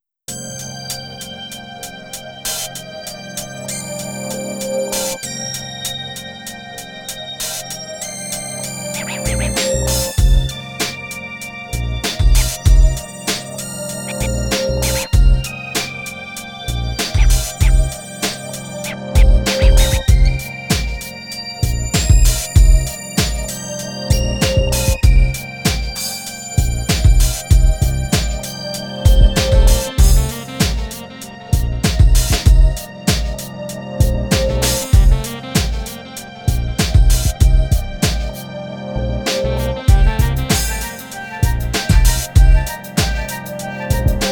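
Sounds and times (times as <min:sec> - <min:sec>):
instrumental music: 0:00.3 - 0:44.3.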